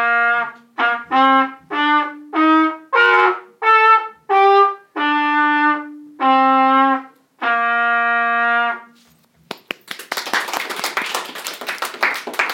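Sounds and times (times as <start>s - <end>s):
trumpet solo: 0.0s - 9.0s.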